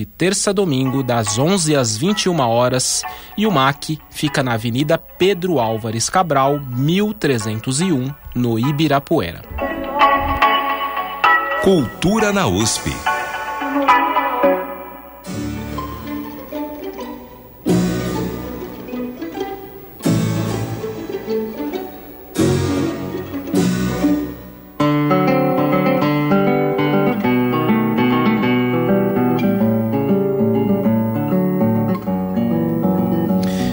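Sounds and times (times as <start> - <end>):
speech: 0.0 - 9.7, 11.6 - 13.1
symphony orchestra concert music: 0.9 - 33.6.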